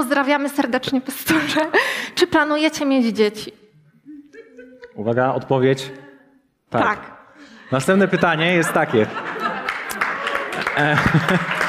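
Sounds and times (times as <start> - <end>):
speech: 0.0 - 3.6, 5.0 - 6.0, 6.7 - 9.4, 10.8 - 11.6
laughter: 4.1 - 6.2, 7.5 - 11.6
scattered audience clapping during a talk: 9.6 - 11.6.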